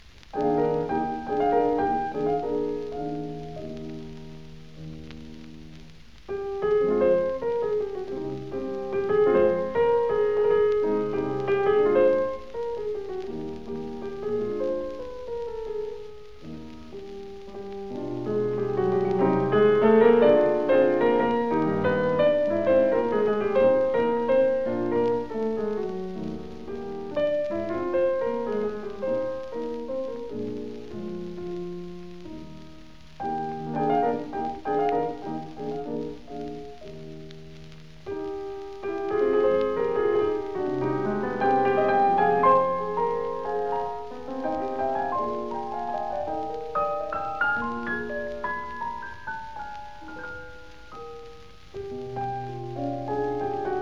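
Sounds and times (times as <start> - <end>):
Polish song on piano: 0.0 - 53.8.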